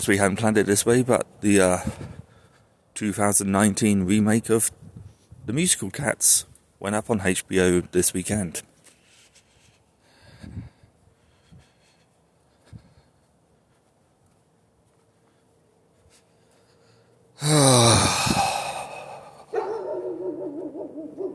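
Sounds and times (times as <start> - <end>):
speech: 0.0 - 2.1, 3.0 - 4.9, 5.5 - 8.7, 17.4 - 18.4
dog: 19.5 - 21.3.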